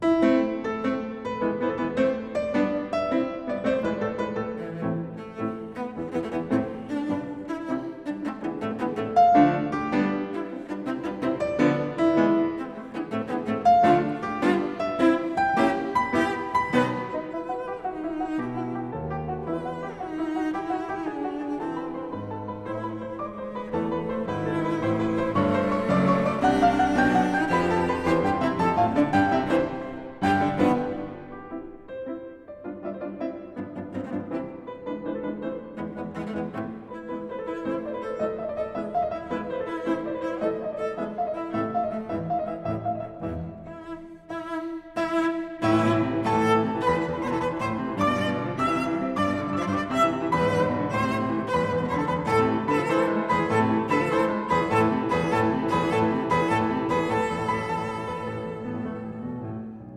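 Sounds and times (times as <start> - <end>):
cello and piano sonata scherzo: 0.0 - 59.9.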